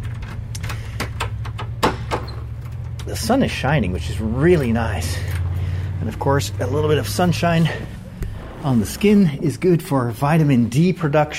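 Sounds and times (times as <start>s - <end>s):
door being opened with clicks and rattles: 0.0s - 3.0s
steady low rumble: 2.7s - 11.1s
speech: 3.1s - 5.4s, 6.0s - 8.0s, 8.6s - 11.3s.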